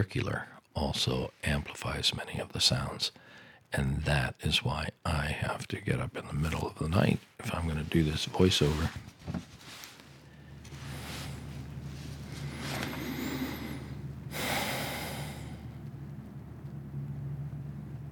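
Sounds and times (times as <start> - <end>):
speech: 0.0 - 9.5
soft breathy whooshes: 9.6 - 15.8
logging truck rumbling on a faraway road: 10.3 - 18.1.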